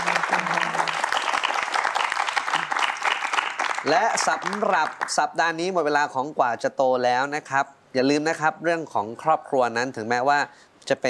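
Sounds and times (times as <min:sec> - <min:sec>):
audience applause: 0:00.0 - 0:05.2
speech: 0:03.8 - 0:11.0.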